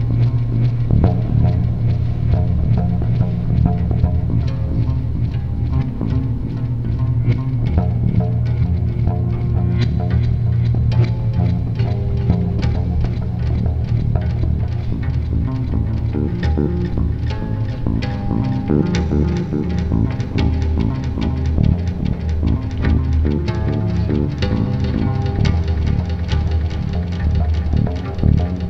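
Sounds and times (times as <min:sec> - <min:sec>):
improvised ambient bass jam in the key of D: 0:00.0 - 0:28.6.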